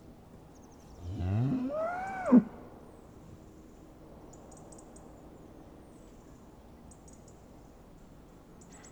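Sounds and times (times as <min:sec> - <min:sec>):
cow mooing: 0:01.0 - 0:02.7.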